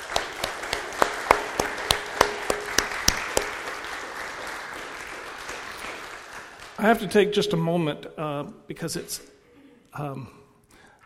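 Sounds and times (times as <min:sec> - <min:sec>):
small round of applause, sparse hand claps: 0:00.0 - 0:07.1
speech: 0:06.8 - 0:09.4, 0:10.0 - 0:10.4.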